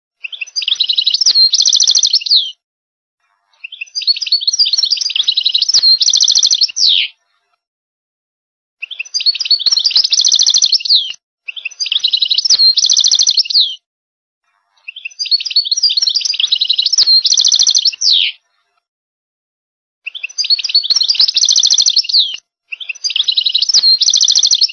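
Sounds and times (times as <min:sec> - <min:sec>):
goldfinch singing: 0:00.2 - 0:02.6, 0:03.6 - 0:07.1, 0:08.8 - 0:13.8, 0:14.8 - 0:18.4, 0:20.1 - 0:24.7.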